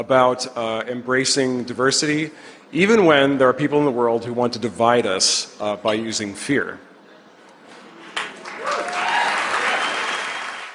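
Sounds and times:
speech: 0.0s - 6.9s
audience applause: 8.2s - 10.7s.

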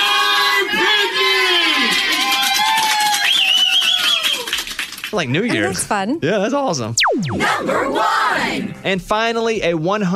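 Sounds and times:
group of people yelling and whooping in celebration: 0.0s - 4.5s, 7.4s - 8.6s
speech: 5.1s - 10.1s.

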